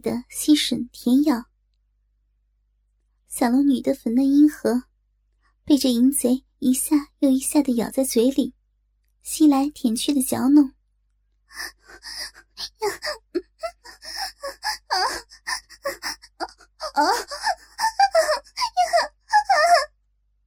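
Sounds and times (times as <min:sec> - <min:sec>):
speech: 0:00.0 - 0:01.5, 0:03.4 - 0:04.9, 0:05.7 - 0:08.6, 0:09.2 - 0:10.8, 0:11.5 - 0:19.1
woman moaning: 0:11.6 - 0:19.9.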